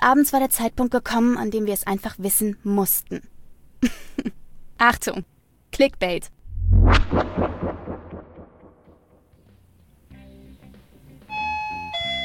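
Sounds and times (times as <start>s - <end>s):
speech: 0.0s - 8.0s
bright sustained whine: 6.4s - 9.1s
doorbell chime: 11.3s - 12.2s.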